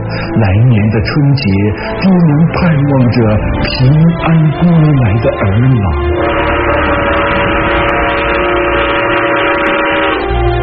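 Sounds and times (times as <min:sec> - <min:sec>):
speech: 0:00.1 - 0:06.3
distant train whistle: 0:06.0 - 0:10.6.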